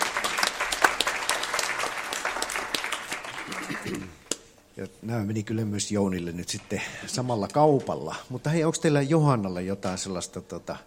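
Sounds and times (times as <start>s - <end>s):
audience applause: 0.0s - 4.2s
speech: 4.8s - 10.8s.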